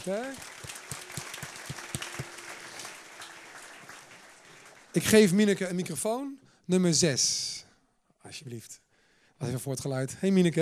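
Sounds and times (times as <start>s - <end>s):
speech: 0.0s - 0.8s, 5.0s - 7.6s, 8.3s - 8.8s, 9.4s - 10.5s
audience applause: 0.0s - 5.6s.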